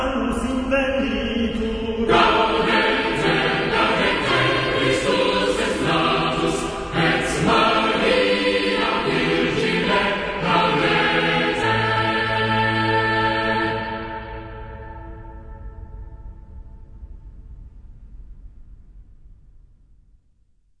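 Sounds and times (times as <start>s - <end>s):
cathedral choir singing a medieval melody: 0.2s - 15.8s.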